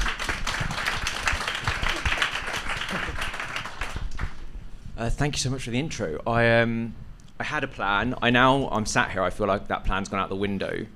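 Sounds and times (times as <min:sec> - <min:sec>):
audience round of applause for panellists: 0:00.0 - 0:04.4
speech: 0:05.0 - 0:10.9.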